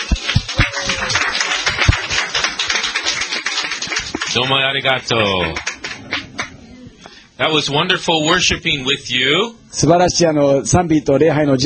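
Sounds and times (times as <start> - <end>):
audience applause welcoming speakers: 0.0 - 6.7
speech: 4.4 - 5.7, 7.4 - 11.6.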